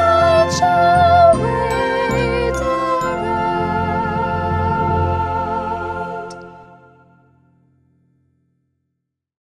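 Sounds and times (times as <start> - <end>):
descant melody: 0.0 - 7.5.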